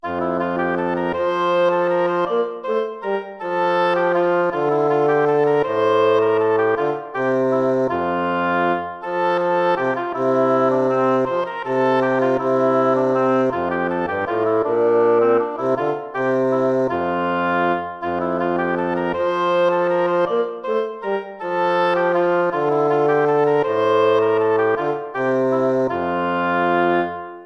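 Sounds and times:
lute playing: 0.0 - 27.4.

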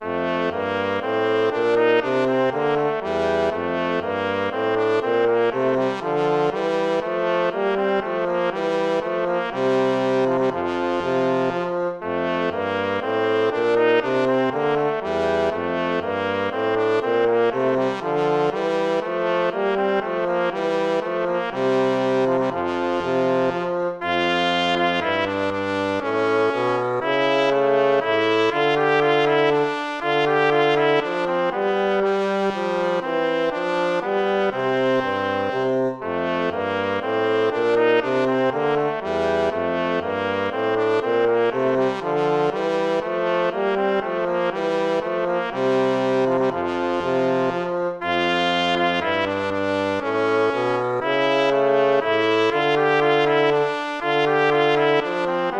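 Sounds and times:
baroque minuet in a major key: 0.0 - 55.5.

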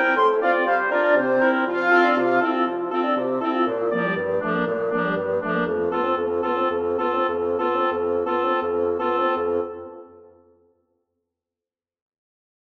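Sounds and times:
wind quintet playing: 0.0 - 10.2.

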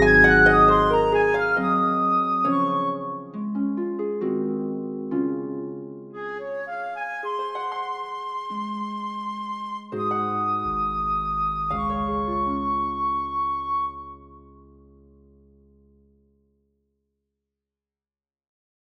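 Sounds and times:
flute playing a nocturne: 0.0 - 3.4, 6.2 - 14.7
harp playing a nocturne: 0.0 - 15.1.

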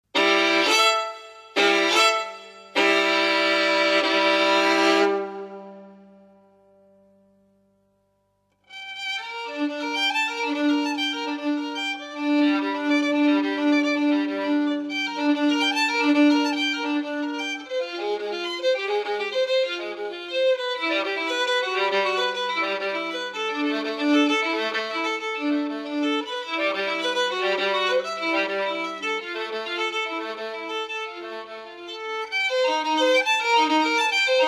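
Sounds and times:
violin: 0.0 - 6.9, 8.6 - 34.4.

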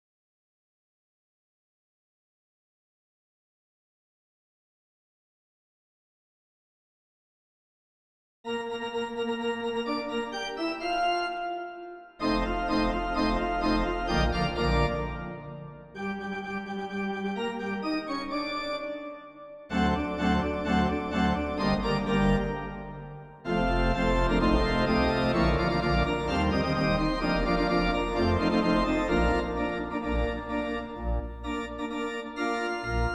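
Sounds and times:
national anthem organ transcription: 8.5 - 33.1.

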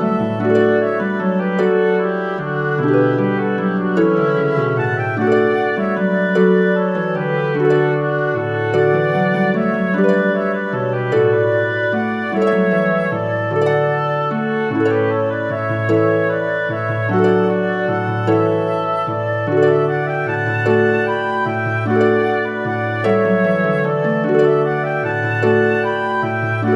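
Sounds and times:
flute: 0.0 - 26.7
harp: 0.0 - 26.7
oboe: 0.0 - 26.7.

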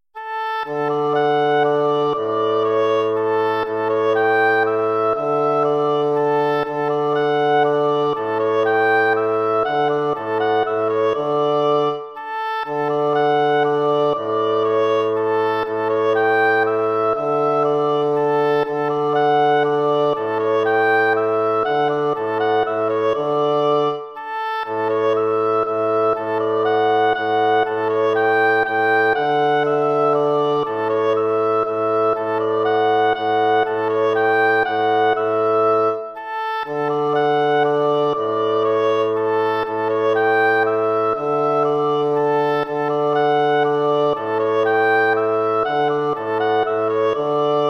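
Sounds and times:
waltz music: 0.2 - 47.6.

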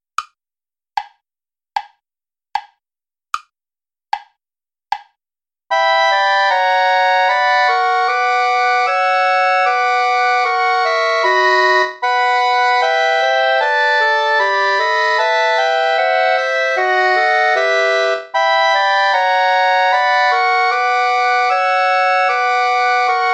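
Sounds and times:
play-along backing music without clarinet: 5.7 - 23.3.

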